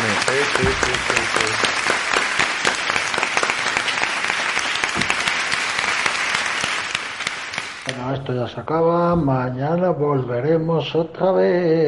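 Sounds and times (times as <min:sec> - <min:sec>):
live audience applause: 0:00.0 - 0:07.9
speech: 0:08.5 - 0:11.8.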